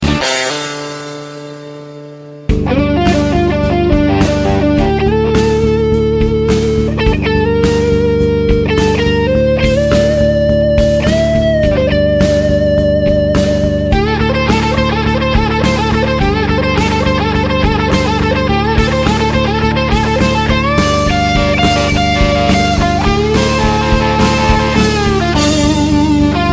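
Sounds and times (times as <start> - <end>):
rock solo: 0.0 - 26.5.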